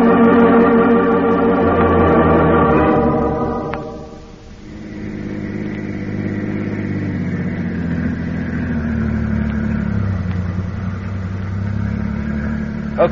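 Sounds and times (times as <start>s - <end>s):
car engine driving off: 0.0s - 13.1s.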